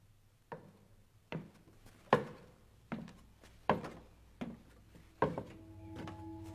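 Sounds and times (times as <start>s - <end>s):
heavy footsteps clomping on wooden boards: 0.5s - 6.5s
faint ringing tones: 5.2s - 6.5s.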